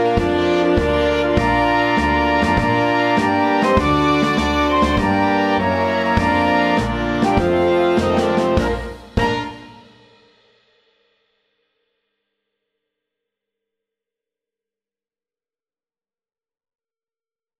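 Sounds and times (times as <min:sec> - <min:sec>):
wind band playing: 0:00.0 - 0:10.1.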